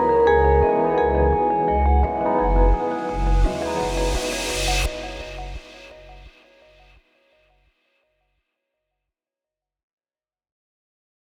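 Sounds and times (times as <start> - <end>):
lo-fi pop music: 0.0 - 6.5.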